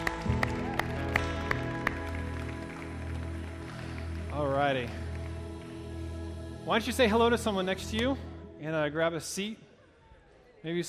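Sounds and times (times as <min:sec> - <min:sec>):
audience clapping: 0:00.0 - 0:06.1
speech: 0:04.7 - 0:05.0, 0:06.6 - 0:09.6, 0:10.6 - 0:10.8.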